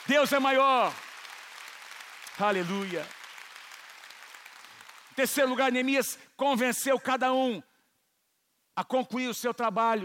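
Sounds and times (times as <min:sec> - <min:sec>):
audience applause: 0:00.0 - 0:05.2
speech: 0:00.1 - 0:01.0, 0:02.4 - 0:03.2, 0:05.2 - 0:07.7, 0:08.8 - 0:10.0.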